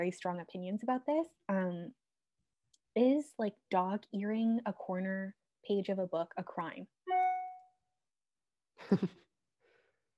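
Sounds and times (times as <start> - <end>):
speech: 0.0 - 2.0, 3.0 - 7.0, 8.8 - 9.3
phone notification chime: 7.1 - 7.7.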